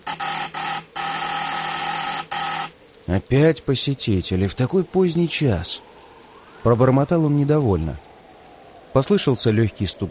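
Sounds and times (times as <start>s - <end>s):
sharp buzzing electric doorbell ringing at front door: 0.0s - 2.7s
speech: 3.1s - 5.9s, 6.6s - 8.1s, 9.0s - 10.0s.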